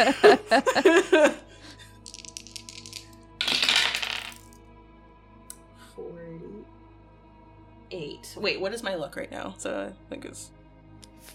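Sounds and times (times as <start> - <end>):
speech: 0.0 - 1.4, 8.4 - 10.6
laughter: 0.0 - 1.9
dice being rolled: 2.0 - 4.6.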